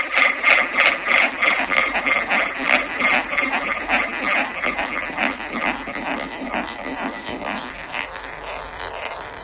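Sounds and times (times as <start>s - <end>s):
ball rolling in a bowl: 0.0s - 9.4s.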